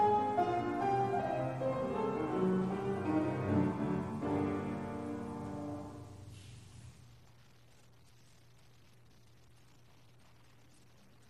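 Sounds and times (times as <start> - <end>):
piano soloist playing a sonata in G minor: 0.0 - 6.3.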